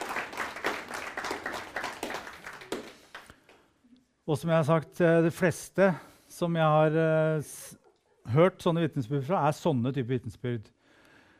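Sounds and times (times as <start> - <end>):
audience applause: 0.0 - 3.3
speech: 4.3 - 10.8.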